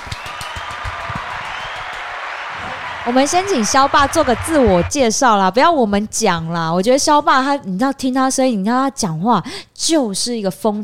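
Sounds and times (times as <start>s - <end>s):
audience applause: 0.0s - 5.0s
speech: 3.1s - 10.8s.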